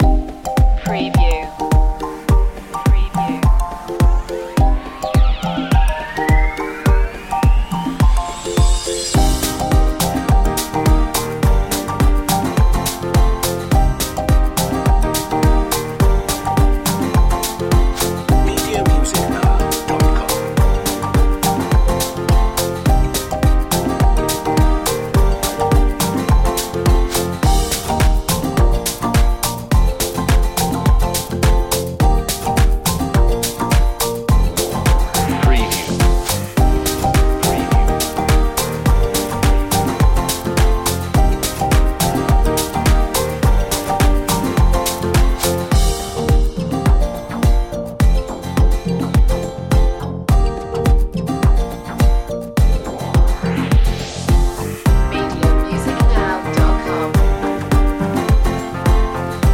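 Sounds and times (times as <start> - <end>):
island beats underscore: 0.0 - 59.5.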